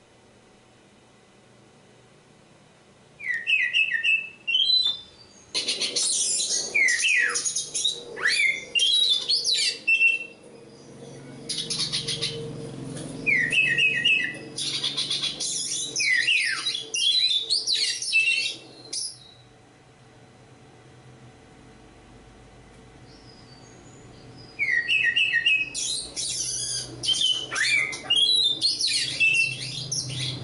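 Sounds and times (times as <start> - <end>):
low hum: 0.0 - 30.4
Oriental magpie-robin singing: 3.2 - 12.6, 13.2 - 19.4, 23.1 - 30.4.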